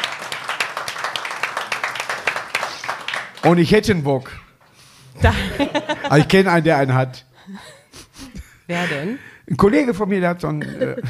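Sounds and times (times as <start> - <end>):
people clapping: 0.0 - 4.0
speech: 3.4 - 4.4, 5.2 - 7.7, 8.7 - 11.0
laughter: 5.2 - 6.7, 10.6 - 11.0.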